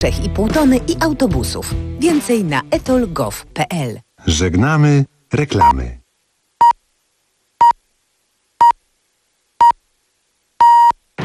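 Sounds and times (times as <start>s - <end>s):
speech: 0.0s - 6.0s
Polish radio hourly time signal beeps marking 7 o'clock: 10.6s - 11.0s.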